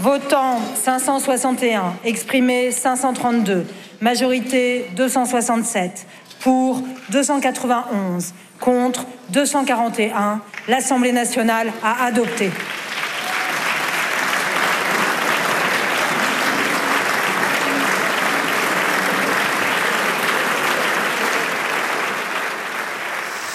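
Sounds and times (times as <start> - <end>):
speech: 0.0 - 12.8
applause from a large assembly in parliament after a vote: 10.5 - 10.8, 12.2 - 23.5
faint crowd murmur: 15.0 - 22.4.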